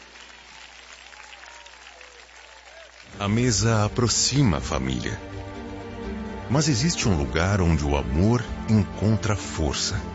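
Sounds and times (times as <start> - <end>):
audience applause: 0.0 - 6.0
speech: 3.2 - 5.5, 6.5 - 10.1.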